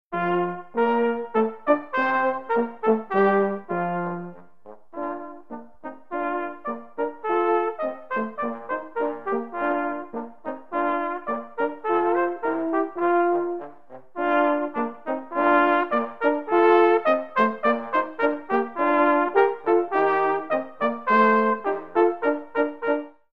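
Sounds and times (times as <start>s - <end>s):
polka music: 0.1s - 23.3s.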